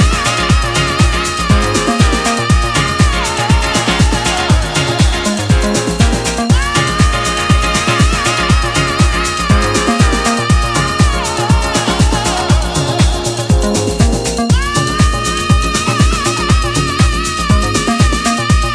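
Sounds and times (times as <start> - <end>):
piano version of a piece: 0.0 - 18.6.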